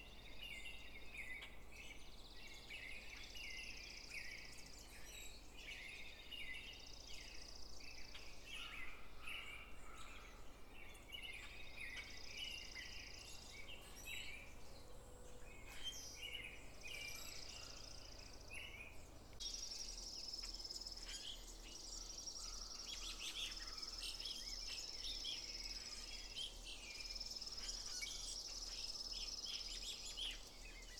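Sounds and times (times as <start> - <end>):
spring birds singing in northern Maine: 0.0 - 30.9.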